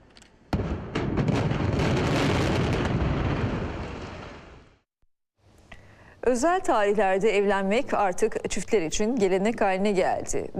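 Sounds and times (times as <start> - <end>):
dynamite blasts in controlled demolition of a 48-year-old building: 0.5 - 4.9
speech: 6.3 - 10.5.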